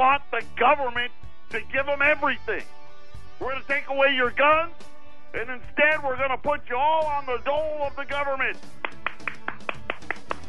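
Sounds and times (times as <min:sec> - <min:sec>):
speech: 0:00.0 - 0:02.8, 0:03.4 - 0:08.8
crowd clapping: 0:08.7 - 0:10.4.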